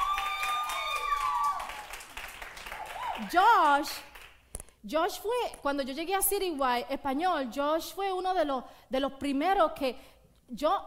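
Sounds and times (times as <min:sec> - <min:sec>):
excited whooping voices: 0:00.0 - 0:01.9, 0:02.7 - 0:03.5
audience applause: 0:00.0 - 0:03.3
speech: 0:03.2 - 0:04.1, 0:04.8 - 0:10.8.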